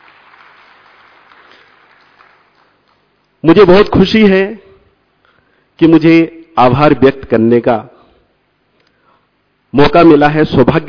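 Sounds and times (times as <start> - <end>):
loud applause: 0.0 - 3.0
speech: 3.4 - 4.6, 5.8 - 7.9, 9.7 - 10.8.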